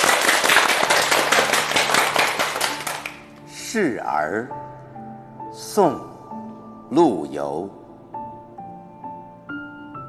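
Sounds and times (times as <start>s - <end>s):
audience applause: 0.0s - 3.2s
speech: 3.7s - 4.7s, 5.6s - 6.1s, 6.9s - 7.8s.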